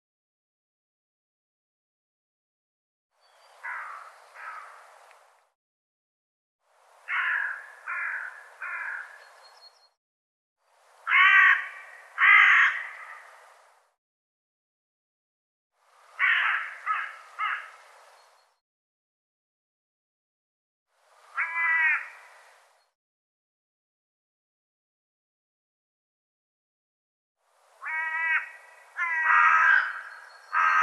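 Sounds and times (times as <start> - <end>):
bird cawing: 3.6 - 4.8, 7.0 - 9.3, 11.1 - 13.4, 16.2 - 17.8, 21.3 - 22.5, 27.8 - 30.8.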